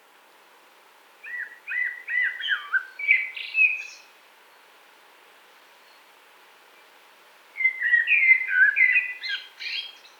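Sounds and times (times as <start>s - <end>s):
Eurasian blackbird song phrase: 1.2s - 4.0s, 7.6s - 10.1s.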